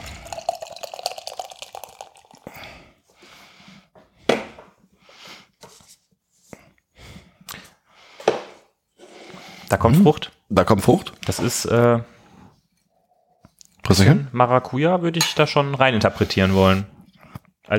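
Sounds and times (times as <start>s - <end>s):
beer being poured from can into glasses: 0.0s - 2.7s
speech: 9.7s - 12.2s, 14.0s - 16.9s.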